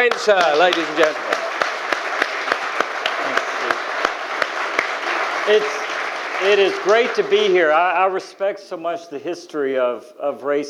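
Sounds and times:
speech: 0.0s - 1.4s, 5.5s - 5.8s, 6.4s - 10.6s
audience applause: 0.0s - 8.2s.

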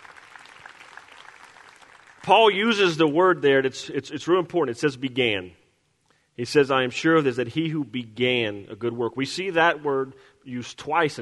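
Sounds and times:
crowd clapping: 0.0s - 3.0s
speech: 2.2s - 5.6s, 6.4s - 11.1s.

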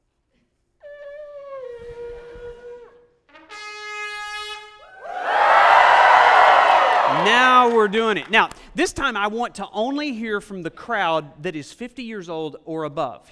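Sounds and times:
audience shouting together: 5.0s - 8.0s
speech: 7.3s - 13.2s.

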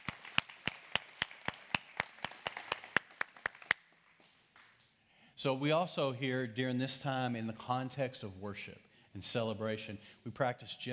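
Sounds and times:
audience clapping: 0.0s - 4.9s
speech: 5.4s - 10.9s.

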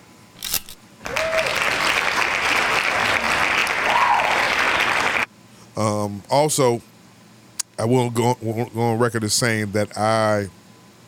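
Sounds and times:
group hand claps: 1.1s - 5.3s
speech: 5.8s - 6.9s, 7.8s - 10.6s.

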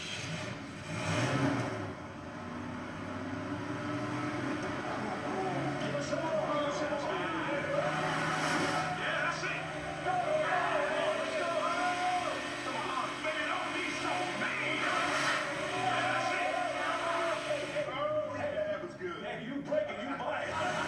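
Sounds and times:
car 4.1-liter engine with digital fuel injection running: 0.0s - 18.8s, 20.4s - 20.8s
voices: 4.5s - 20.8s.

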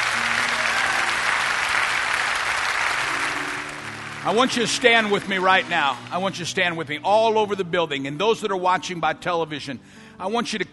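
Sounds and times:
audience applause: 0.0s - 6.5s
speech: 4.2s - 10.7s.

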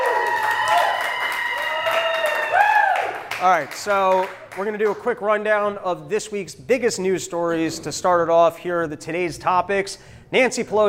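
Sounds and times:
live crowd clapping and cheering: 0.0s - 5.2s
speech: 3.4s - 10.8s.

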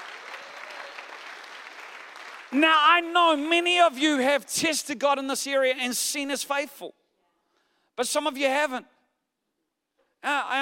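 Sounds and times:
audience clapping in praise: 0.0s - 3.5s
speech: 2.5s - 7.0s, 8.0s - 8.9s, 10.2s - 10.6s.

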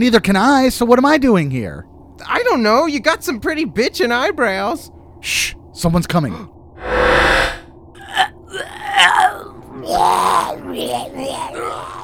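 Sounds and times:
speech: 0.0s - 7.4s, 8.5s - 11.9s
alien creatures' retching, vomit-like vocal noises: 8.0s - 12.0s.

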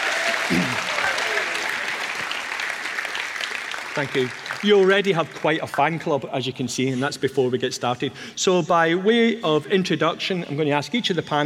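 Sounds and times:
audience clapping to welcome a panel onto a stage: 0.0s - 6.0s
speech: 4.0s - 11.4s.

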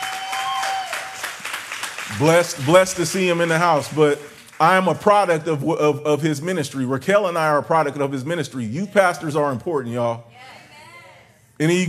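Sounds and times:
crowd clapping: 0.0s - 5.4s
speech: 2.1s - 10.6s, 11.6s - 11.8s.

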